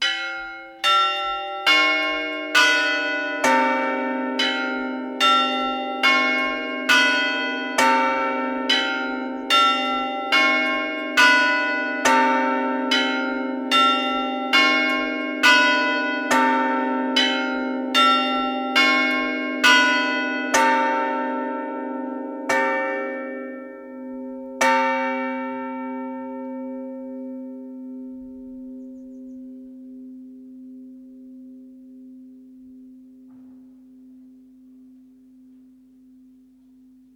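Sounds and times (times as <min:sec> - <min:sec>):
bells ringing: 0:00.0 - 0:28.4.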